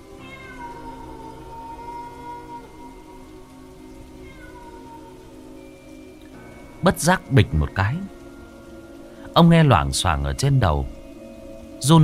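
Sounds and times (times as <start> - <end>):
cat meowing faintly in the distance: 0.2 - 2.9, 4.2 - 5.4
speech: 6.8 - 8.2, 9.4 - 11.0, 11.8 - 12.0.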